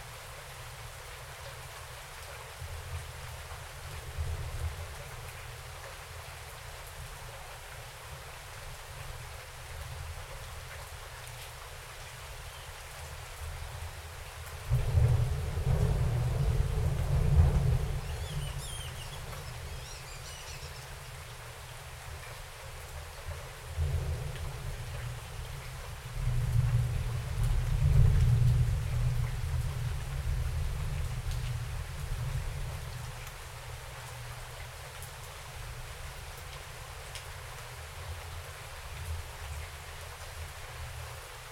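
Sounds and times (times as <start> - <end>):
rain outside: 0.0 - 41.5
thunder outside: 14.7 - 19.8.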